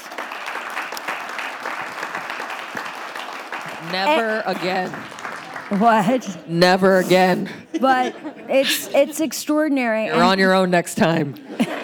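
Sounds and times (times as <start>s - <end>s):
audience applause: 0.0s - 7.0s
laughter: 3.6s - 9.5s, 11.4s - 11.8s
speech: 3.8s - 5.1s, 5.7s - 11.8s.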